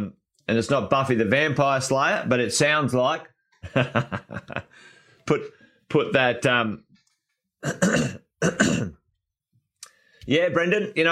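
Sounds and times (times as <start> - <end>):
speech: 0.0 - 6.8, 7.6 - 9.0, 10.3 - 11.1
laughter: 3.6 - 4.8
throat clearing: 7.6 - 9.1.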